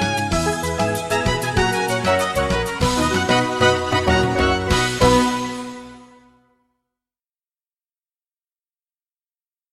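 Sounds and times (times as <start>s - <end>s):
musical accompaniment: 0.0s - 6.6s.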